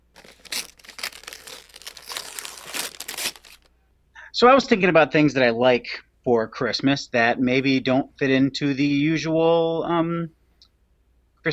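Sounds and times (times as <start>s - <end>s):
Christmas gift wrapping paper crinkling and tearing: 0.0s - 3.7s
speech: 4.4s - 10.4s.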